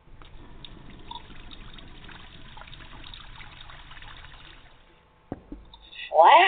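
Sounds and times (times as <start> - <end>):
tap water trickling at weak pressure: 0.1 - 5.8
small knocks: 5.3 - 5.8.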